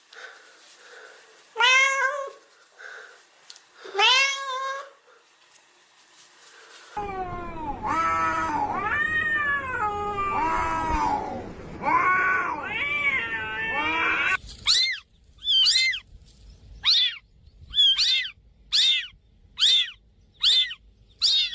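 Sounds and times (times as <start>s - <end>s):
kitten meowing: 1.6s - 2.4s, 3.9s - 5.0s, 7.0s - 16.0s, 16.8s - 17.2s, 17.8s - 21.5s.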